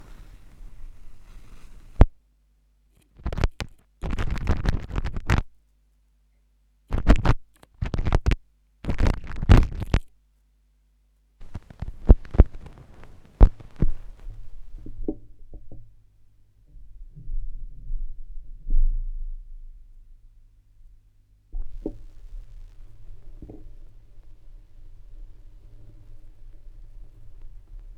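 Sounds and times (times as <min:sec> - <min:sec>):
vinyl record crackle: 0:00.0 - 0:02.2, 0:03.1 - 0:05.6, 0:06.9 - 0:10.1, 0:11.4 - 0:15.0, 0:21.6 - 0:27.9.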